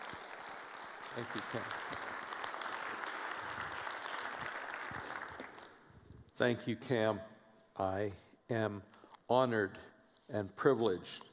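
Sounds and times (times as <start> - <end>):
audience applause welcoming a speaker: 0.0 - 5.8
speech: 1.2 - 2.1, 6.4 - 11.3.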